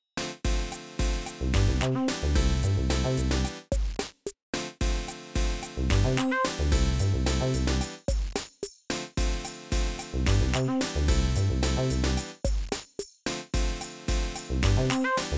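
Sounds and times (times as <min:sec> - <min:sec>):
main background music: 0:00.2 - 0:03.7, 0:04.6 - 0:08.0, 0:09.0 - 0:12.4, 0:13.4 - 0:15.3.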